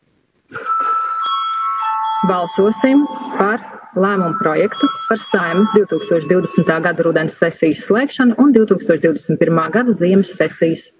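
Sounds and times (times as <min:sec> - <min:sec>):
parliament chamber bell ringing: 0:01.1 - 0:07.3
speech: 0:02.2 - 0:10.9.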